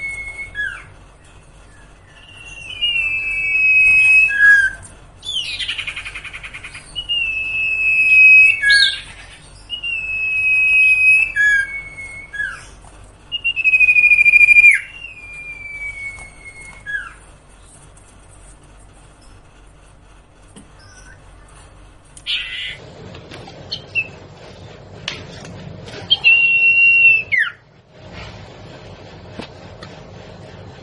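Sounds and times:
singer singing long whistles: 0:00.0 - 0:01.0, 0:01.6 - 0:17.2, 0:20.8 - 0:21.2, 0:22.2 - 0:22.8, 0:23.7 - 0:24.2, 0:26.1 - 0:27.6.

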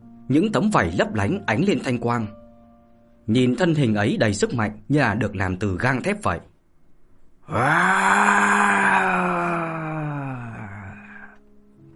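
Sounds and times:
speech: 0:00.3 - 0:02.4, 0:03.3 - 0:06.5, 0:07.5 - 0:08.5
giant dragon roar: 0:07.5 - 0:11.4.

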